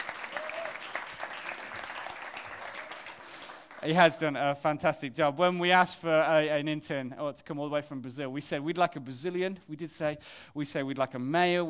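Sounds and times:
audience applause: 0:00.0 - 0:03.9
faint whoop: 0:00.2 - 0:01.0
speech: 0:03.8 - 0:11.6.

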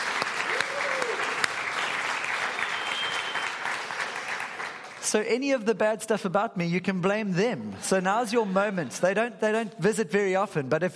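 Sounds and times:
audience applause: 0:00.0 - 0:05.1
speech: 0:05.1 - 0:10.9.

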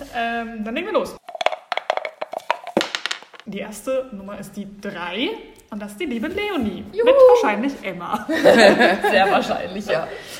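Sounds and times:
speech: 0:00.2 - 0:01.2, 0:03.5 - 0:10.3
dice rattling in a dice cup: 0:01.2 - 0:03.5
laughter: 0:08.3 - 0:10.0.

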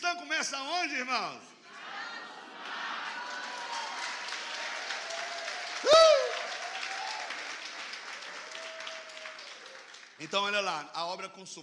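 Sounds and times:
speech: 0:00.1 - 0:01.6, 0:10.2 - 0:11.6
audience applause: 0:02.6 - 0:10.7
loud high whooping cry or whistle: 0:05.3 - 0:07.2.

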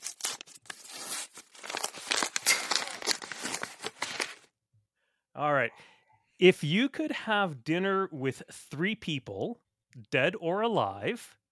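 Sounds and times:
paper envelope being torn open: 0:00.0 - 0:04.5
speech: 0:05.4 - 0:11.4.

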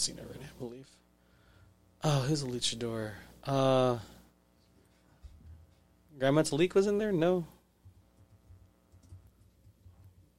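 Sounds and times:
speech: 0:00.0 - 0:01.1, 0:02.0 - 0:04.2, 0:06.2 - 0:07.6
typing on a computer keyboard: 0:07.9 - 0:10.2.

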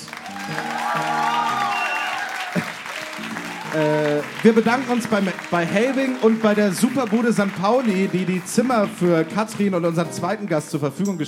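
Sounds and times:
live audience applause: 0:00.0 - 0:09.3
speech: 0:03.8 - 0:11.2.

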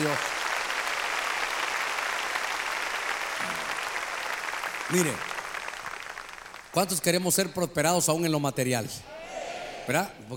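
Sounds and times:
speech: 0:00.0 - 0:00.4, 0:04.9 - 0:05.3, 0:06.8 - 0:09.2, 0:09.9 - 0:10.3
audience clapping: 0:00.0 - 0:07.9.

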